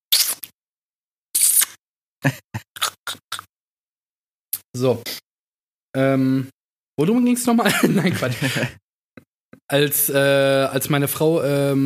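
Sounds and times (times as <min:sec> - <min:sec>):
mouth smacking: 0:00.1 - 0:00.5, 0:01.4 - 0:01.8, 0:02.8 - 0:03.5
speech: 0:02.2 - 0:03.2, 0:04.8 - 0:05.2, 0:06.0 - 0:08.8, 0:09.7 - 0:11.8
laughter: 0:07.6 - 0:08.8.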